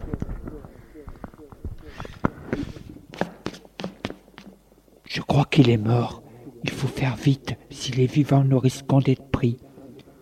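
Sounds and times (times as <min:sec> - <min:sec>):
man running footsteps: 0:01.1 - 0:04.6
speech: 0:05.2 - 0:09.7.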